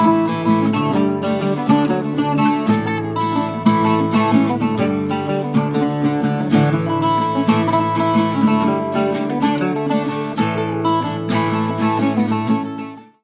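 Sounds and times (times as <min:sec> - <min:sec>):
bouzouki: 0:00.0 - 0:13.2.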